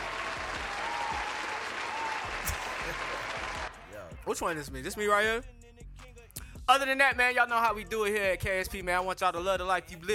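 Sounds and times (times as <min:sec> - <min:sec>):
audience applause: 0:00.0 - 0:03.8
speech: 0:04.2 - 0:05.6, 0:06.7 - 0:10.1.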